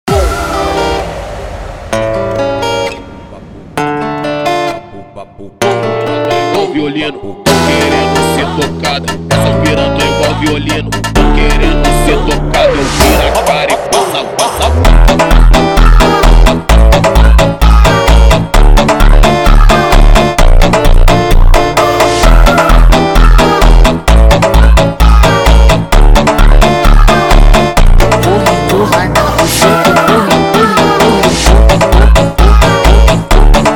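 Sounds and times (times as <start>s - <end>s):
funk music: 0.0s - 33.7s.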